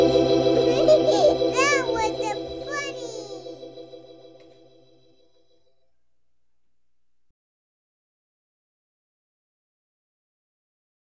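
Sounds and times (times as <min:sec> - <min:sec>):
Christmas song: 0:00.0 - 0:04.8.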